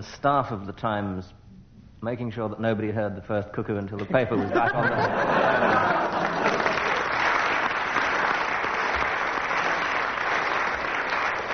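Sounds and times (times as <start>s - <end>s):
speech: 0.0s - 1.4s, 2.0s - 6.6s
laughter: 4.0s - 7.1s
live audience applause: 5.2s - 11.5s.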